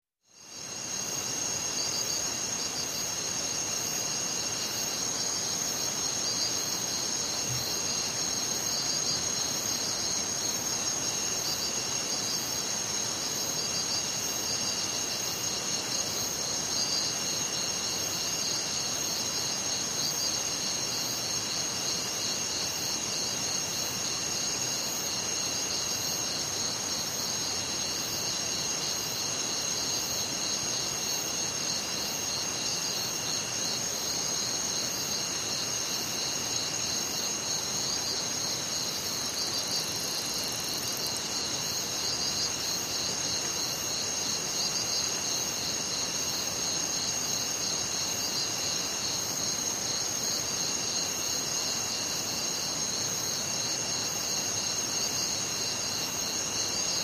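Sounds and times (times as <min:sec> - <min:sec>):
night jungle ambience: 0:00.2 - 0:57.0.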